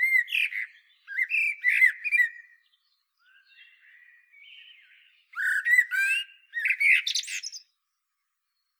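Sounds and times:
common blackbird Turdus merula singing: 0.0s - 7.8s.

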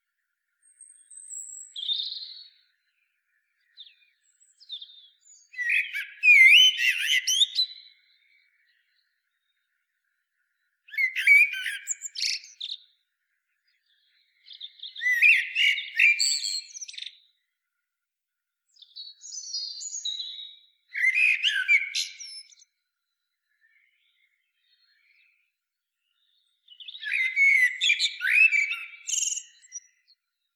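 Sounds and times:
common blackbird song: 0.0s - 30.5s.

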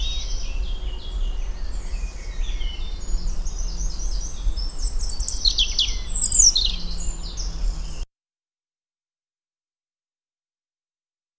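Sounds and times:
European robin song: 0.0s - 8.1s.

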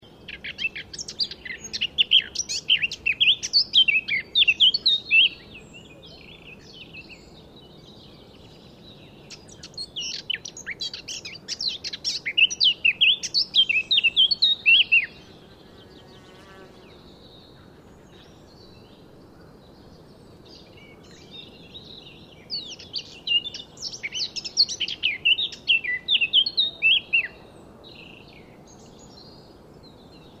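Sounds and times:
Eurasian blackcap singing warble and fluty whistles: 0.2s - 16.0s, 19.9s - 29.5s.

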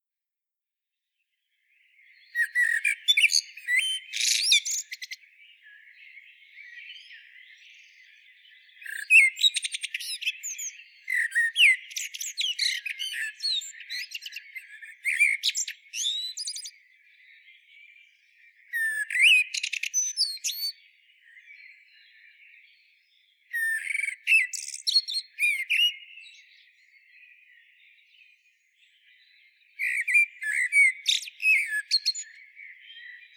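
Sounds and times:
Eurasian blackbird singing: 1.7s - 33.3s.

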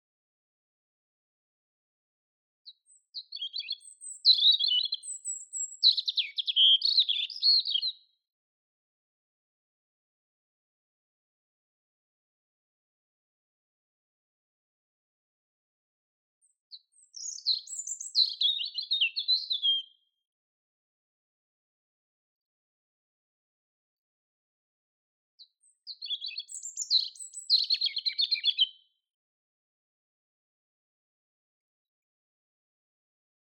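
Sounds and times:
European robin singing: 2.7s - 8.0s, 16.7s - 20.0s, 25.6s - 28.8s.

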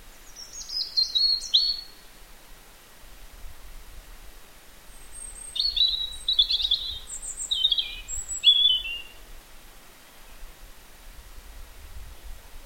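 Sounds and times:
European robin singing: 0.2s - 2.0s, 4.9s - 9.2s.

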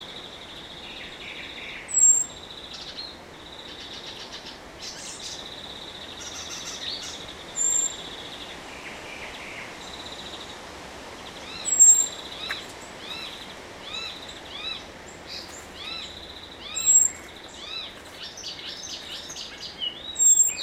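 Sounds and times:
other birds chirping and trilling: 0.9s - 10.6s, 11.2s - 20.6s
Eurasian blackbird high thin whistles: 11.7s - 12.1s, 20.2s - 20.6s.

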